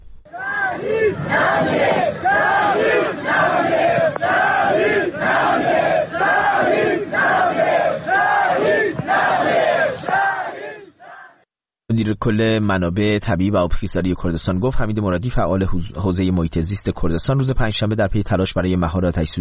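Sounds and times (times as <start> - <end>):
funeral crowd chanting slogans: 0.3 - 11.4
speech: 12.0 - 19.3.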